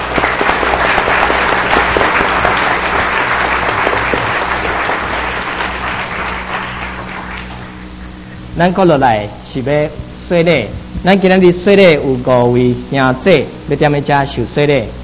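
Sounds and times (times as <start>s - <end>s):
church congregation clapping before a baptism: 0.0s - 8.4s
speech: 8.6s - 15.0s.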